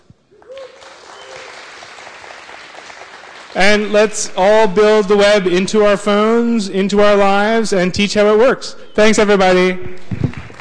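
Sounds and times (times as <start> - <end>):
audience applause: 0.4 - 3.9, 10.2 - 10.5
speech: 3.6 - 10.0.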